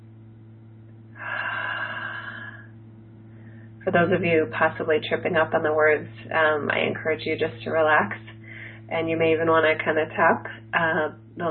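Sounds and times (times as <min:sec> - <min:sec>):
low steady hum: 0:00.0 - 0:11.4
deep inhale: 0:01.2 - 0:03.8, 0:08.3 - 0:08.9
speech: 0:03.9 - 0:11.4.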